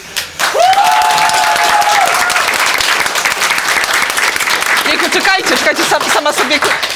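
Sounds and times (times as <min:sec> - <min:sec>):
audience applause: 0:00.4 - 0:06.9.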